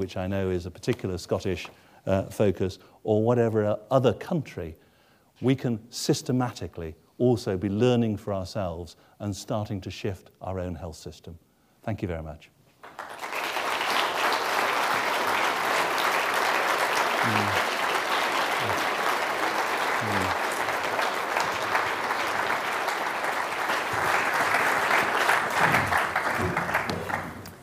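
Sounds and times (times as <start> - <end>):
speech: 0.0 - 4.8, 5.4 - 13.1
audience applauding after a lecture on global health: 12.8 - 27.6.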